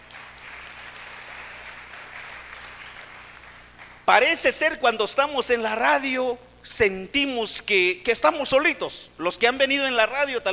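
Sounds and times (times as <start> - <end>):
applause: 0.0 - 4.1
speech: 4.1 - 10.5.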